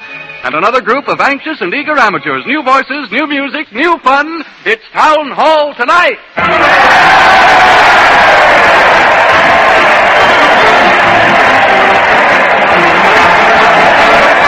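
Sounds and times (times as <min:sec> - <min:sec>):
speech: 0:00.4 - 0:08.4
crowd cheering: 0:06.4 - 0:14.4.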